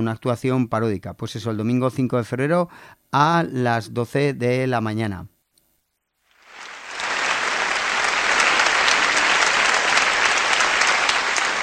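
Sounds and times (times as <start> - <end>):
speech: 0.0 - 5.3
applause: 6.3 - 11.6.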